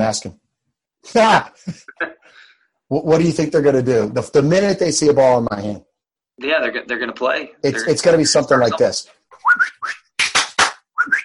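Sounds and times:
speech: 0:00.0 - 0:00.4, 0:01.0 - 0:10.0
voice imitating a coach's whistle: 0:09.3 - 0:10.1, 0:11.0 - 0:11.2
sharp handclaps: 0:10.1 - 0:11.2.

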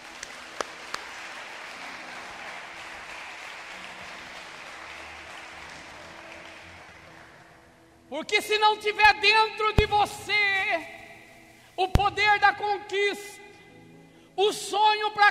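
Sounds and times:
applause from church audience: 0:00.0 - 0:07.7
speech: 0:08.1 - 0:11.0, 0:11.8 - 0:13.4, 0:14.4 - 0:15.2.

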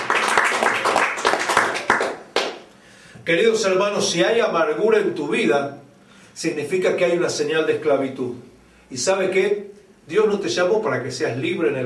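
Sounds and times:
audience applause: 0:00.0 - 0:02.6
speech: 0:03.2 - 0:05.8, 0:06.4 - 0:11.8.

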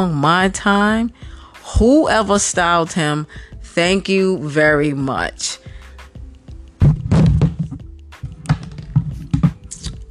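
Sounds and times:
speech: 0:00.0 - 0:05.7
microphone knocked over: 0:06.8 - 0:09.7.

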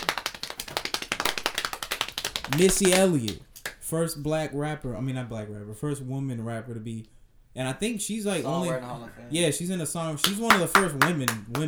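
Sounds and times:
hands clapping: 0:00.0 - 0:03.8, 0:10.2 - 0:11.6
speech: 0:02.5 - 0:11.6.

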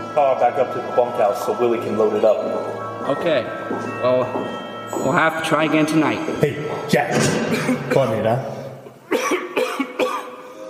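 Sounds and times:
speech: 0:00.2 - 0:08.6
man coughing: 0:07.3 - 0:08.4, 0:09.0 - 0:10.5.

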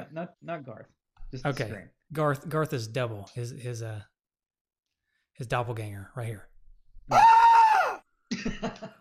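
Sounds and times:
speech: 0:00.0 - 0:04.1, 0:05.4 - 0:06.5, 0:07.1 - 0:07.4, 0:08.4 - 0:08.9
man screaming sound effect: 0:07.1 - 0:08.0.

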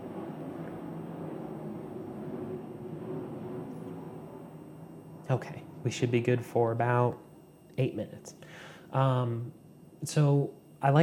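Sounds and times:
plane flying overhead: 0:00.0 - 0:06.8
speech: 0:05.3 - 0:07.2, 0:07.8 - 0:11.0.

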